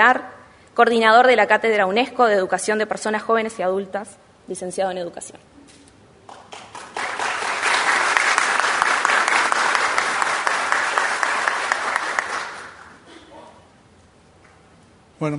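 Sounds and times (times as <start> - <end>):
speech: 0.0 - 5.6, 15.2 - 15.3
audience applause: 6.3 - 13.0.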